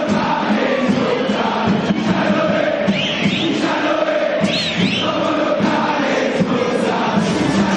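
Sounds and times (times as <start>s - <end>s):
River Plate fans cheering in a stadium: 0.0s - 7.7s
shrill whistles: 2.8s - 3.8s, 4.4s - 5.3s.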